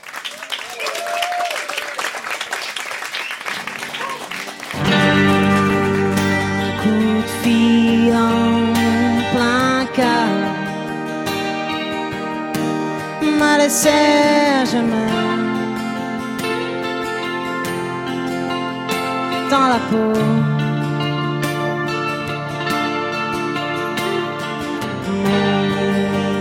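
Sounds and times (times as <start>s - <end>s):
live audience clapping: 0.0s - 6.9s
band music with sustained tones: 3.5s - 26.3s
speech: 13.8s - 15.3s, 19.5s - 20.4s.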